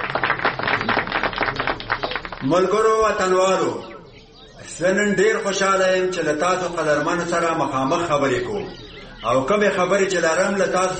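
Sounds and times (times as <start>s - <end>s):
group of people clapping in honour of a speaker at a public gathering: 0.0s - 2.8s
speech: 2.4s - 3.9s, 4.7s - 10.9s.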